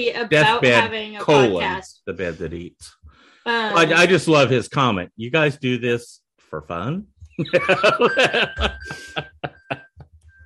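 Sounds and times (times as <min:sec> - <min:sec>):
speech: 0:00.0 - 0:09.6
laughter: 0:00.3 - 0:01.8, 0:07.4 - 0:10.0
smartwatch find-my-phone alert tone: 0:00.3 - 0:01.9, 0:03.7 - 0:04.6, 0:07.4 - 0:09.9.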